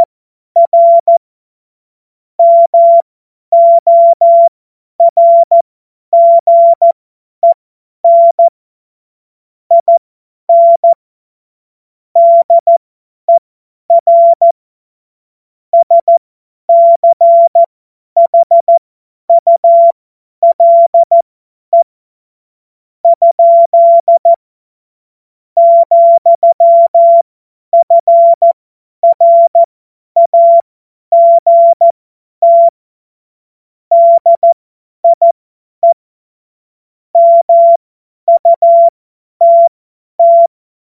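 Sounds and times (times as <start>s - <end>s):
CW Morse code beeps: 0.0s - 1.2s, 2.4s - 5.6s, 6.2s - 8.5s, 9.7s - 11.0s, 12.2s - 12.8s, 13.9s - 14.6s, 15.8s - 21.9s, 23.1s - 24.4s, 25.6s - 32.8s, 33.9s - 36.0s, 37.2s - 40.5s.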